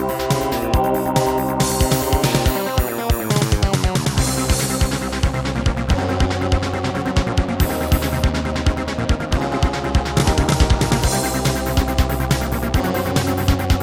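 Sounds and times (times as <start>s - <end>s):
Roland SC-33 synthesizer music: 0.0s - 13.8s.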